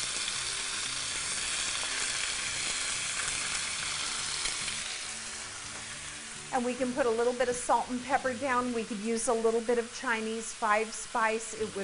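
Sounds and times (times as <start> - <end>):
chicken sizzling in a frying pan: 0.0 - 11.8
speech: 6.5 - 11.8.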